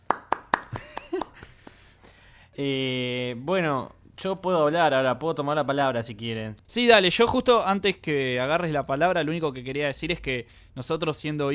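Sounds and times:
applause: 0:00.0 - 0:01.9
speech: 0:02.6 - 0:11.5.

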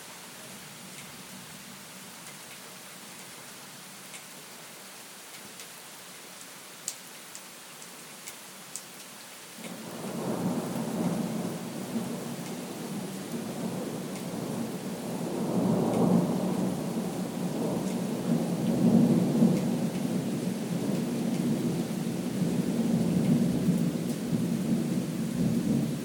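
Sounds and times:
thunderstorm: 0:09.7 - 0:26.0.

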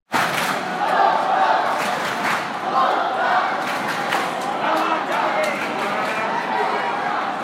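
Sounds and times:
fans singing loudly: 0:00.2 - 0:07.4.

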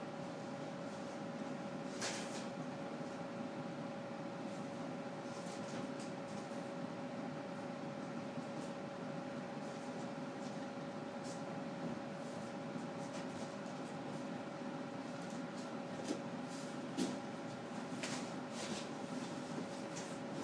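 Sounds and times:
air conditioner whooshing: 0:00.0 - 0:20.4.

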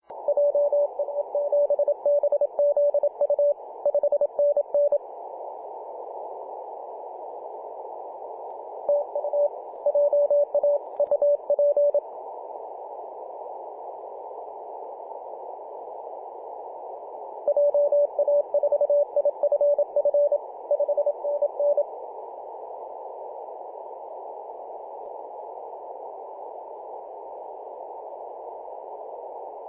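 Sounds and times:
morse code CW on 18.086 MHz: 0:00.3 - 0:05.0, 0:08.9 - 0:12.0, 0:17.5 - 0:21.8.

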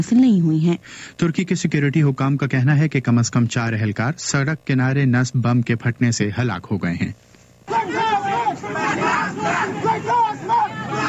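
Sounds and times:
speech: 0:00.0 - 0:08.0
dense babble of voices: 0:07.7 - 0:11.0
protest crowd chanting: 0:07.7 - 0:11.0.

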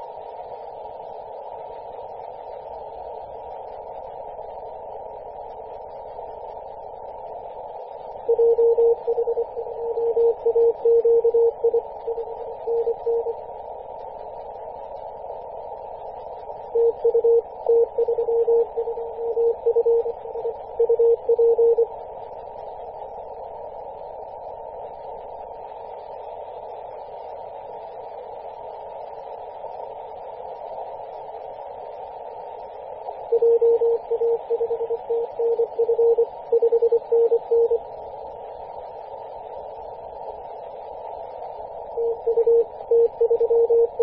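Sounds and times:
CW morse code tones on 10 MHz: 0:08.3 - 0:13.3, 0:16.8 - 0:21.9, 0:33.4 - 0:37.8, 0:42.0 - 0:44.0.

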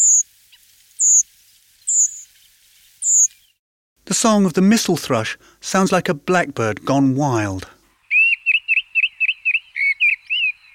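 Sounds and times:
redwing flight call: 0:00.0 - 0:01.2, 0:03.0 - 0:03.4, 0:08.1 - 0:10.7
speech: 0:04.2 - 0:07.8.

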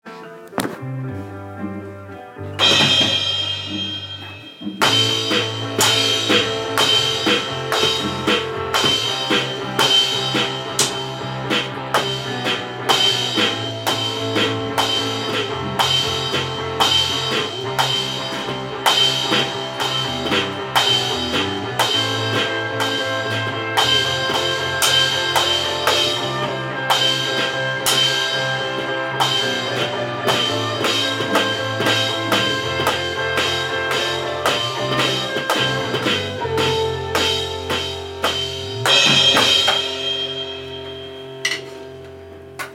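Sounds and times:
drumming: 0:02.6 - 0:42.7.

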